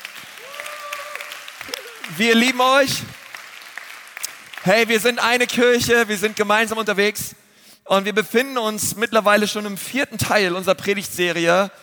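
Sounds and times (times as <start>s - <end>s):
audience applause: 0.0s - 5.5s
speech: 2.1s - 3.2s, 4.6s - 11.8s.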